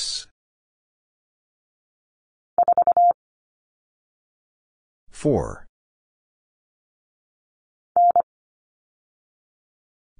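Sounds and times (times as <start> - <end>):
morse code letter h at 25 wpm: 2.6 - 3.1, 8.0 - 8.3.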